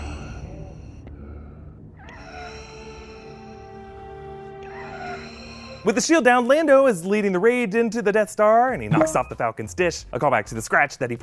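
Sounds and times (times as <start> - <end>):
wounded mechanical respirator breathing through mask: 0.0 - 5.9
steady tonal hum: 0.0 - 6.4
speech: 5.8 - 11.2.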